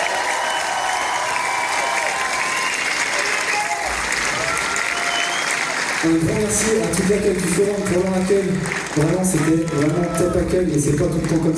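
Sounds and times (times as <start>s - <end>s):
scattered cheers and whoops: 0.0s - 5.8s
crowd applauding: 0.0s - 11.5s
speech: 6.0s - 11.5s.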